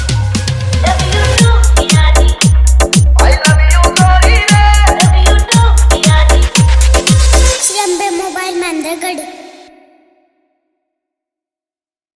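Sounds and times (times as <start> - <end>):
hard bass remix song: 0.0 - 9.7.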